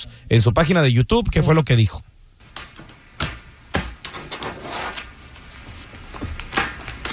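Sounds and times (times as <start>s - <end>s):
speech: 0.3s - 2.1s
tarot cards slapping on a table: 2.5s - 4.2s, 6.1s - 7.1s
soft papery rustling of tarot cards: 4.1s - 7.1s.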